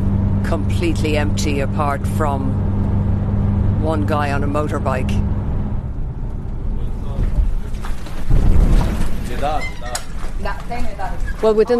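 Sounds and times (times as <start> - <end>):
planes in the air: 0.0 - 8.3
speech: 0.5 - 2.7, 3.8 - 5.3, 9.4 - 11.7
distant explosions from airstrikes: 5.2 - 9.5.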